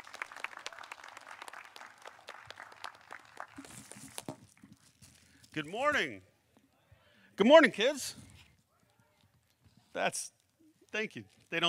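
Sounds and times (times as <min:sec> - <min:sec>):
audience applause: 0:00.0 - 0:03.9
speech: 0:05.6 - 0:06.3, 0:07.4 - 0:08.2, 0:10.0 - 0:11.6.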